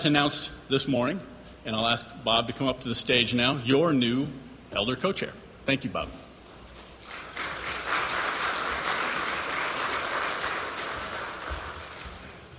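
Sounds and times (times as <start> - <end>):
speech: 0.0 - 6.2
audience applause: 7.0 - 12.5.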